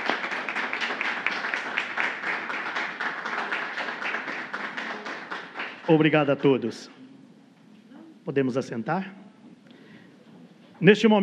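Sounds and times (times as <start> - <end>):
audience applause: 0.0 - 6.3
speech: 5.9 - 7.0, 8.2 - 9.2, 10.8 - 11.2.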